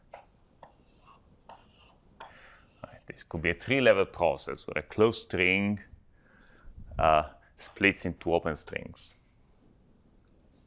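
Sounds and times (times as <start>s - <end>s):
pen strokes hand-drawing a diagram of open and closed strings: 0.6s - 2.0s
speech: 3.1s - 5.9s, 7.0s - 9.2s.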